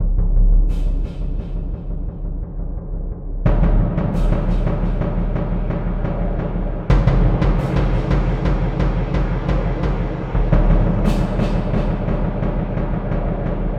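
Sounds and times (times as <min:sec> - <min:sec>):
low-mid percussion: 0:00.0 - 0:13.7.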